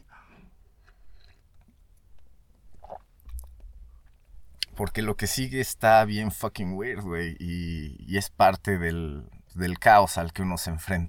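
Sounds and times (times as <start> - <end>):
person sipping a drink: 0.0 - 1.8, 2.7 - 4.7
speech: 4.8 - 11.0.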